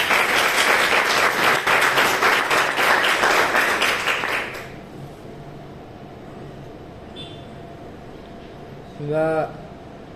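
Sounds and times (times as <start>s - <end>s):
audience applause: 0.0s - 4.8s
speech: 9.1s - 9.6s.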